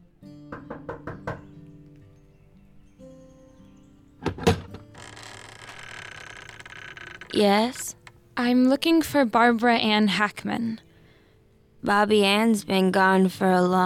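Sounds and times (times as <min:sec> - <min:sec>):
knocking on a door: 0:00.5 - 0:01.5
rattling clunk of door opening: 0:04.2 - 0:05.8
speech: 0:07.4 - 0:07.8, 0:08.4 - 0:10.8, 0:11.8 - 0:13.8.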